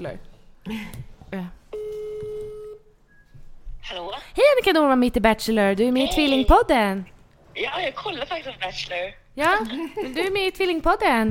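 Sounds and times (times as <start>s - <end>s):
speech: 0.0s - 1.6s, 3.8s - 11.2s
outgoing phone call ringback tone: 1.7s - 2.9s.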